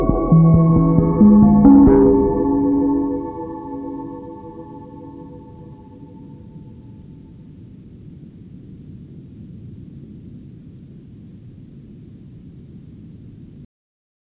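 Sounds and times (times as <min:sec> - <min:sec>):
modem music: 0:00.0 - 0:06.0.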